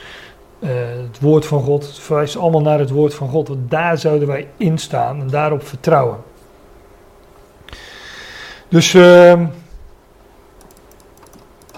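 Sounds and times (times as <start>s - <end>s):
low steady hiss: 0.0s - 11.7s
speech: 0.6s - 6.3s, 8.7s - 9.6s
computer mouse clicking: 10.6s - 11.7s.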